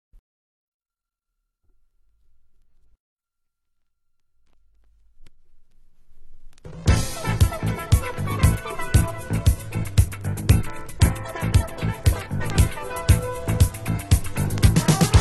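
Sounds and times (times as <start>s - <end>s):
French boogie music: 6.7s - 15.1s.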